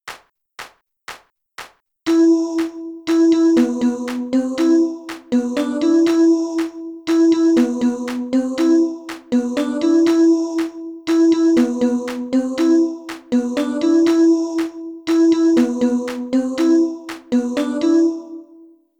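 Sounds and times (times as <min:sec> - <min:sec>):
music loop: 0:02.1 - 0:18.4.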